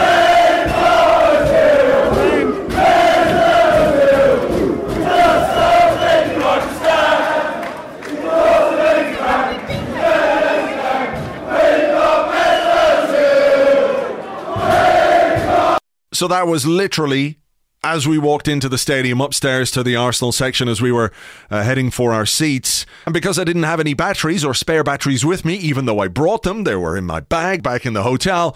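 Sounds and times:
football fans singing inside the stadium: 0.0s - 15.8s
speech: 16.2s - 28.5s.

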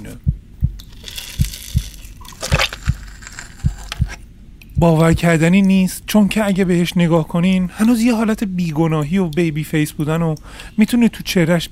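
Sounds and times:
speech: 0.0s - 0.3s, 4.8s - 11.7s
beating heart sound effect: 0.0s - 0.8s, 1.4s - 5.4s
faint wet crunchy textures: 0.8s - 4.2s.

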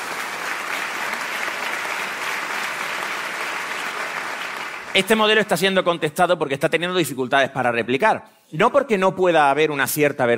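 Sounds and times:
crowd applause: 0.0s - 5.6s
speech: 5.0s - 10.3s.

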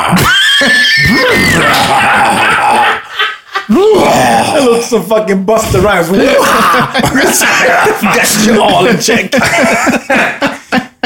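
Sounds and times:
speech: 0.0s - 1.5s, 4.6s - 11.0s
person imitating a horse whinny: 0.0s - 3.0s, 3.7s - 4.9s
laughter: 0.5s - 4.2s, 6.1s - 11.0s.

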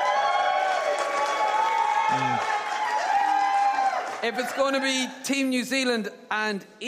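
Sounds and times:
audience cheering: 0.0s - 5.1s
speech: 4.2s - 6.8s.

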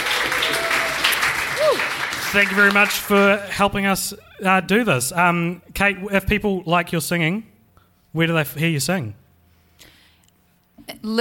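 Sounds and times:
audience applause: 0.0s - 3.8s
speech: 2.3s - 7.5s, 8.1s - 9.2s, 10.8s - 11.1s.

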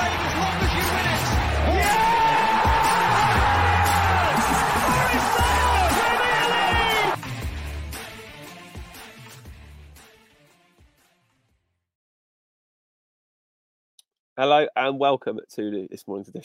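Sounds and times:
commentator shouting: 0.0s - 7.2s
football crowd cheering a Nottingham Forest goal at the City Ground, Nottingham: 0.0s - 7.2s
speech: 14.4s - 16.4s.

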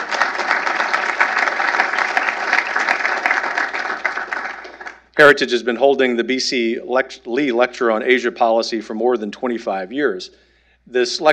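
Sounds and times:
audience applause: 0.0s - 5.0s
speech: 5.2s - 11.3s.

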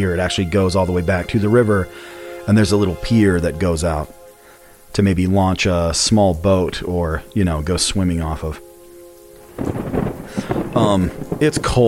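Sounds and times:
speech: 0.0s - 4.2s, 4.9s - 8.6s, 9.6s - 10.0s, 10.8s - 11.8s
freezing sleet pouring down: 9.5s - 11.8s.

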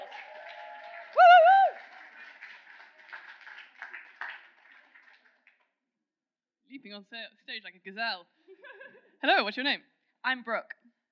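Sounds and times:
audience applause: 0.0s - 5.6s
speech: 6.8s - 10.8s.

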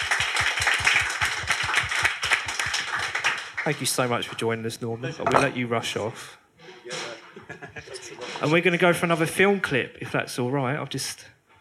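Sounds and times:
crowd applauding: 0.0s - 4.1s
speech: 3.6s - 6.4s, 7.6s - 11.4s
laughter: 7.2s - 8.5s.

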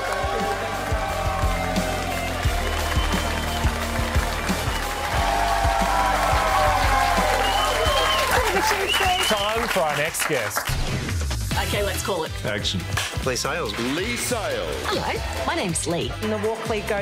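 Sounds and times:
audience applause: 0.0s - 10.8s
speech: 10.1s - 11.0s, 11.7s - 17.0s.

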